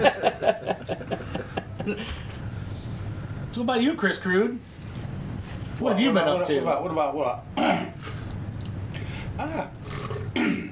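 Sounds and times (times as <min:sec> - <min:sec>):
laughter: 0:00.0 - 0:02.2
low steady hum: 0:00.0 - 0:10.7
speech: 0:01.8 - 0:02.2, 0:03.6 - 0:04.7, 0:05.8 - 0:07.8, 0:09.4 - 0:09.8
person clearing throat: 0:07.6 - 0:08.0, 0:09.4 - 0:10.7.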